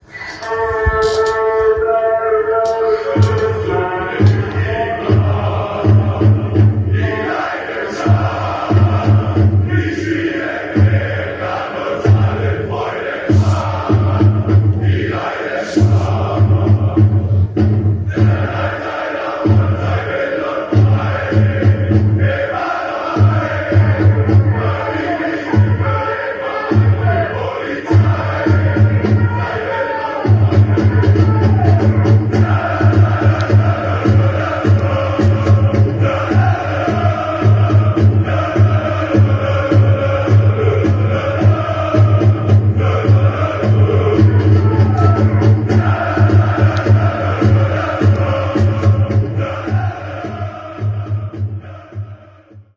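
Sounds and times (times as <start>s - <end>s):
fans chanting melodically: 0.0s - 52.7s.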